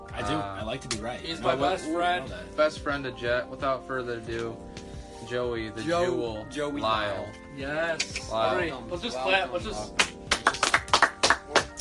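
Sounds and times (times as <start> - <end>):
speech: 0.2 - 10.1
people clapping: 9.9 - 11.7.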